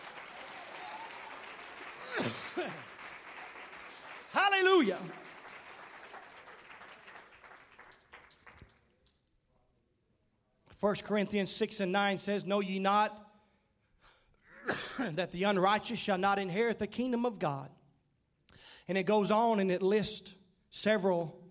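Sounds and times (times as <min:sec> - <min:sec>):
audience clapping: 0:00.0 - 0:09.2
speech: 0:04.8 - 0:05.2, 0:10.8 - 0:13.2, 0:14.7 - 0:17.8, 0:18.9 - 0:21.4.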